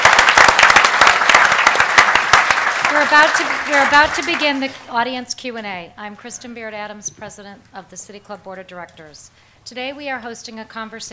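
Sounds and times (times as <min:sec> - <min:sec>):
audience applause: 0:00.0 - 0:04.9
speech: 0:03.1 - 0:11.1.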